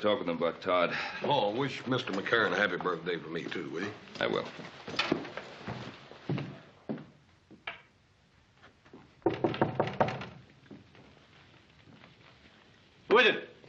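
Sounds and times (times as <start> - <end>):
speech: 0.0 - 5.4
knocking on a wooden door: 9.2 - 10.4.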